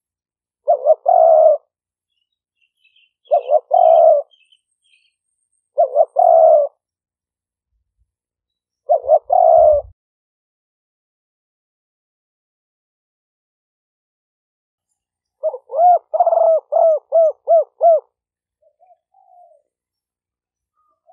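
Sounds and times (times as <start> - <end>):
dove cooing: 0.6 - 1.7, 2.9 - 4.6, 5.8 - 6.8, 8.9 - 9.9, 15.4 - 19.8, 20.8 - 21.1.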